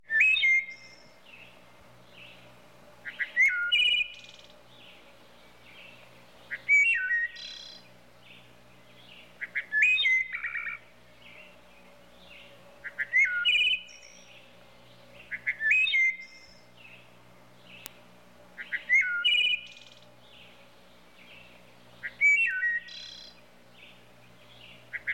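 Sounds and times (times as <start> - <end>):
Wood thrush singing: 0.0 - 25.1.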